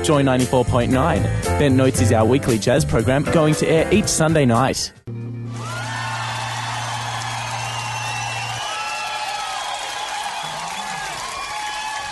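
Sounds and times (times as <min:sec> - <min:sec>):
speech: 0:00.0 - 0:05.0
studio audience applause: 0:05.5 - 0:12.1.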